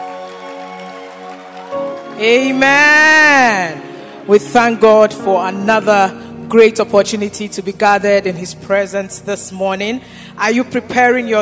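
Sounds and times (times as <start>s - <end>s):
audience clapping hands: 0.0s - 3.8s
speech: 2.2s - 11.4s.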